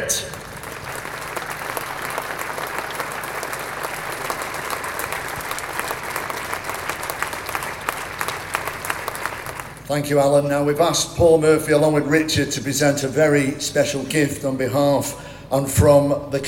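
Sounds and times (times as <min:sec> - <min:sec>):
applause: 0:00.0 - 0:09.9
speech: 0:09.9 - 0:16.4.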